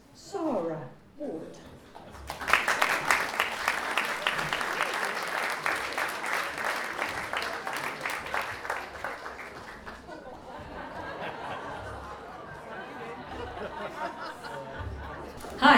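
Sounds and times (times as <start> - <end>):
audience at a book festival applauding an author: 2.0 - 10.4
laughter: 3.0 - 15.7.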